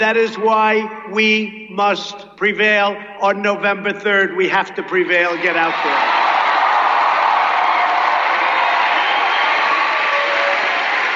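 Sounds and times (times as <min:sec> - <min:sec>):
speech: 0:00.0 - 0:06.2
large crowd cheering: 0:05.3 - 0:11.1.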